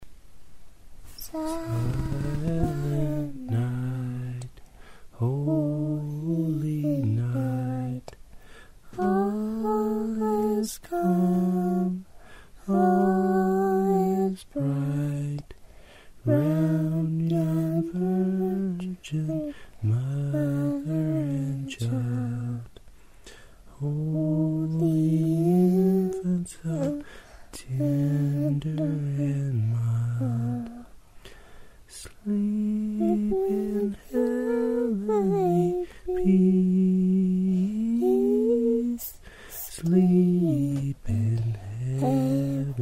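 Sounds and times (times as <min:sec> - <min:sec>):
person singing a Christmas carol: 0:01.1 - 0:42.8.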